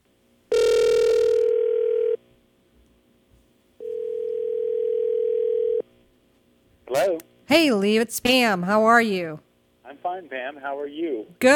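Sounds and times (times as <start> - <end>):
telephone call ringback tones: 0.5 - 2.2, 3.8 - 5.8
speech: 7.5 - 11.5.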